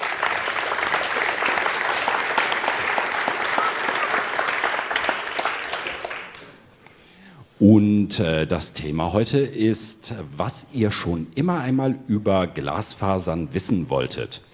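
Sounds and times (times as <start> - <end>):
audience applause: 0.0 - 6.6
speech: 7.6 - 14.5.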